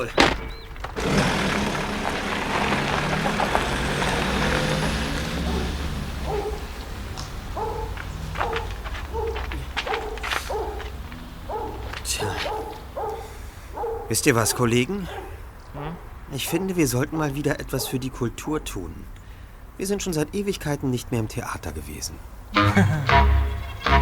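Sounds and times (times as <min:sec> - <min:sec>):
speech: 0:00.0 - 0:01.2, 0:14.1 - 0:15.2, 0:16.4 - 0:19.2, 0:19.8 - 0:23.4
car engine starting and driving off: 0:00.0 - 0:14.0
birds chirping: 0:00.0 - 0:22.5
laughter: 0:22.6 - 0:23.3.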